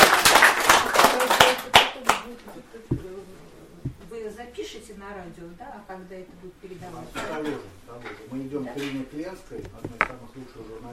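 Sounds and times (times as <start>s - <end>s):
audience applause at a book presentation event: 0.0s - 2.2s
speech: 4.9s - 10.9s.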